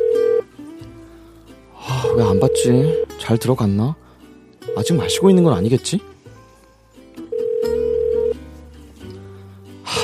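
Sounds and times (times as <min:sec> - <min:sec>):
phone ringback tone: 0:00.0 - 0:00.5, 0:02.0 - 0:03.1, 0:04.7 - 0:05.7, 0:07.3 - 0:08.4
speech: 0:02.2 - 0:04.0, 0:04.8 - 0:06.2.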